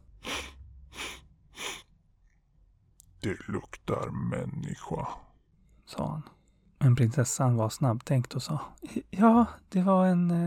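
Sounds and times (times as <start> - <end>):
storyteller imitating a dragon sniffing: 0.2 - 1.8
speech: 3.2 - 5.3, 5.9 - 10.4.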